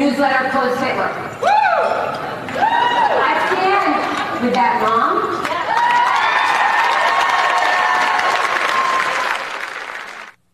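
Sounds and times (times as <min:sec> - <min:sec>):
speech: 0:00.2 - 0:01.5
crowd cheering and whooping: 0:01.4 - 0:03.8, 0:05.4 - 0:10.3
crowd clapping: 0:03.8 - 0:10.4.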